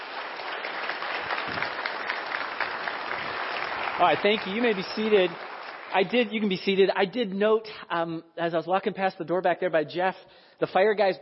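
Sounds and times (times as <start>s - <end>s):
audience applause: 0.0s - 6.6s
speech: 1.5s - 1.8s, 4.0s - 11.1s.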